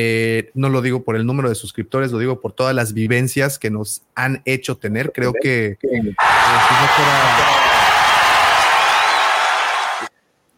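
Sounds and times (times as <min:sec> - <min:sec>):
speech: 0:00.0 - 0:07.7
applause sound effect: 0:06.2 - 0:10.1.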